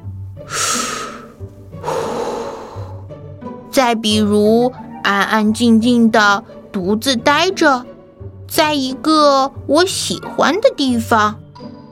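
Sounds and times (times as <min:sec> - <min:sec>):
faint music: 0:00.0 - 0:11.8
deep calming breath: 0:00.4 - 0:03.1
speech: 0:03.8 - 0:07.9, 0:08.5 - 0:11.4.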